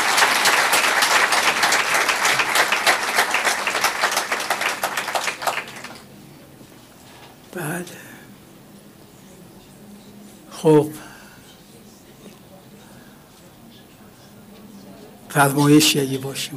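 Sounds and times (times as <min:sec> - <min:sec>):
audience applauding: 0:00.0 - 0:06.1
speech: 0:10.6 - 0:11.0, 0:15.4 - 0:16.5.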